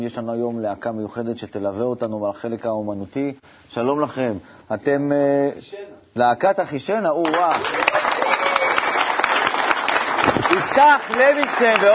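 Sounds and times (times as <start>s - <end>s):
speech: 0.0s - 8.0s, 10.6s - 11.9s
applause: 7.2s - 11.9s.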